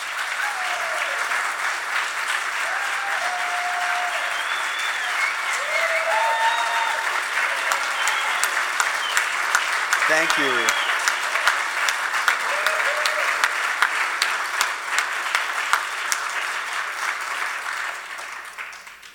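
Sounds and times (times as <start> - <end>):
audience applause welcoming Congressman Earl Blumenauer: 0.0 - 19.1
faint whistles: 4.2 - 7.0, 7.8 - 9.4, 10.4 - 11.1
speech: 10.2 - 10.8.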